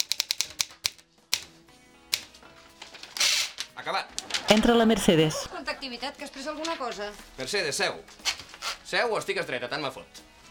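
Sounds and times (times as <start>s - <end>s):
typing on an old typewriter: 0.0s - 1.0s
speech: 3.9s - 8.3s, 8.9s - 10.3s.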